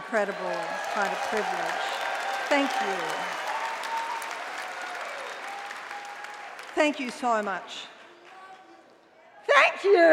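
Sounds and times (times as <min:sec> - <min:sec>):
audience clapping: 0:00.0 - 0:09.1
speech: 0:00.1 - 0:03.4, 0:06.8 - 0:07.9, 0:09.6 - 0:10.1.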